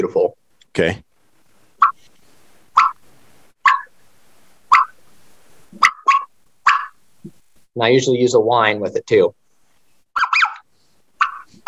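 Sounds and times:
speech: 0:00.0 - 0:01.1, 0:07.8 - 0:09.4
bubble cluck on a turkey call: 0:01.8 - 0:02.0, 0:02.7 - 0:03.0, 0:03.6 - 0:03.9, 0:04.7 - 0:05.0, 0:05.8 - 0:07.0, 0:10.2 - 0:11.6.

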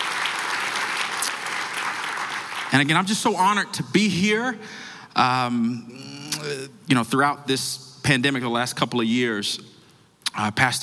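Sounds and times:
audience applause: 0:00.0 - 0:03.0
speech: 0:02.8 - 0:09.7, 0:10.3 - 0:10.8.

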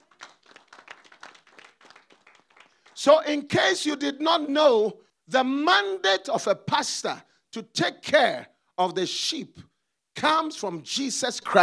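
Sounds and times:
group clapping in rhythm: 0:00.0 - 0:03.0
speech: 0:03.0 - 0:11.6.

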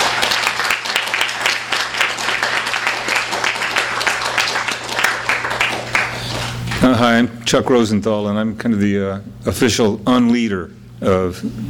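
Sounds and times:
audience applause: 0:00.0 - 0:06.9
speech: 0:06.9 - 0:11.6.

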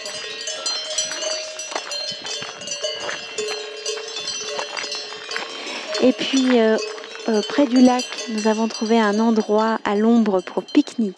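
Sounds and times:
cowbells clanking on a moving herd of cows: 0:00.0 - 0:11.1
speech: 0:06.0 - 0:11.1.

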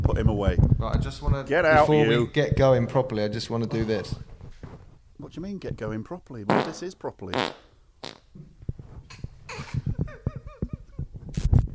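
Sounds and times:
speech: 0:00.2 - 0:04.3, 0:05.2 - 0:07.6
fart: 0:06.5 - 0:08.3, 0:11.3 - 0:11.6.

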